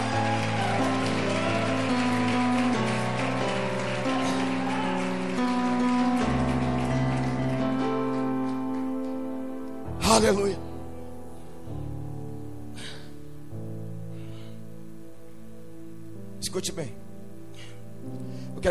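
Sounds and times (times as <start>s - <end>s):
crowd clapping: 0.0s - 9.8s
sustained keyboard chords: 0.0s - 18.6s
speech: 10.2s - 10.6s, 16.6s - 17.0s.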